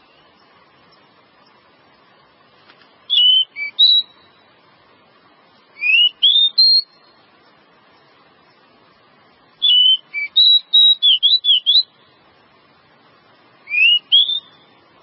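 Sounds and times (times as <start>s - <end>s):
Java sparrow song of clear slurred whistles and chips: 3.1s - 4.2s, 9.6s - 11.9s, 13.7s - 14.7s.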